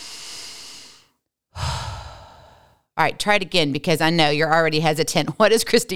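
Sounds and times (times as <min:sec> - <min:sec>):
deep breathing: 0:00.0 - 0:02.9
speech: 0:03.0 - 0:05.9.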